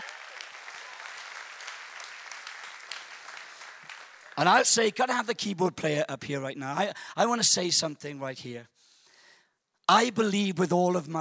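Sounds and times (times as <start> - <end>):
audience clapping and cheering: 0.0 - 4.9
speech: 4.4 - 8.8, 9.9 - 11.1.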